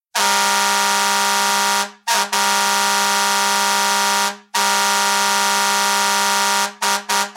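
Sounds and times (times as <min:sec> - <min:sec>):
train horn: 0:00.2 - 0:07.3.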